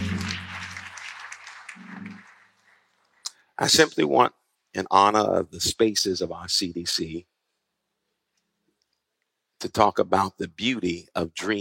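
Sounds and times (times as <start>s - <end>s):
audience hand clapping: 0.0s - 3.4s
speech: 3.6s - 7.3s, 9.6s - 11.6s.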